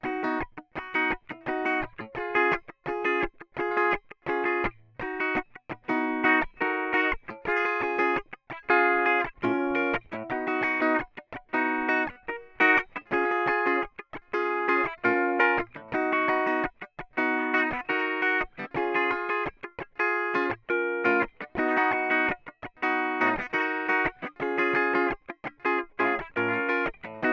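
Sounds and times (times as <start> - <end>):
strumming: 0.0 - 27.3.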